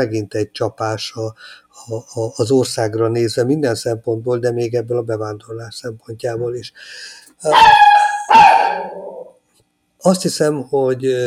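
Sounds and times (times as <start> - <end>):
speech: 0.0 - 9.1, 10.0 - 11.2
dog barking: 7.5 - 9.3.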